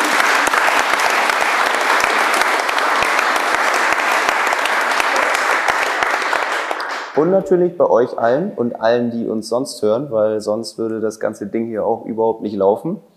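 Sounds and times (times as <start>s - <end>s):
audience applause: 0.0s - 7.2s
speech: 7.2s - 13.1s.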